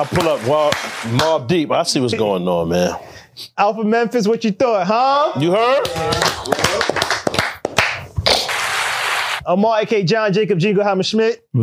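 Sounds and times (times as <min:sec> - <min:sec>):
audience clapping: 0:00.0 - 0:01.5, 0:05.7 - 0:09.4
speech: 0:00.0 - 0:07.5, 0:09.5 - 0:11.6.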